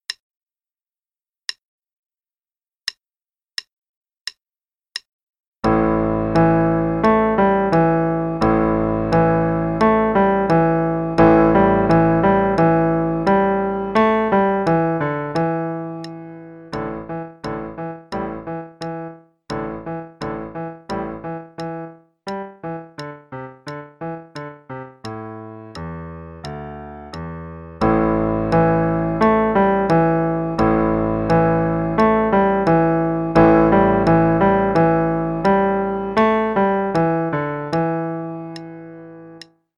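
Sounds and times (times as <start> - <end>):
improvised music: 5.6 - 39.6.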